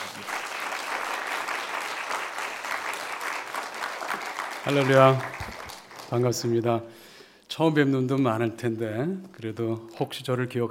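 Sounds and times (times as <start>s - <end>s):
audience applause: 0.0s - 6.6s
speech: 4.6s - 5.3s, 6.1s - 10.7s.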